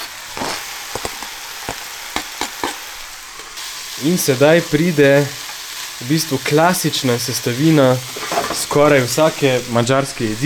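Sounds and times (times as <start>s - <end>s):
sharp crackles and pops of frying food: 0.0s - 3.6s
meat and peppers frying in a pan: 0.0s - 10.4s
speech: 4.0s - 5.4s, 6.0s - 10.4s.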